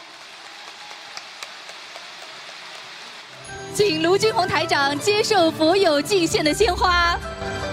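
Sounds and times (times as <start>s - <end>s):
applause: 0.0s - 3.4s
speech: 3.8s - 7.6s.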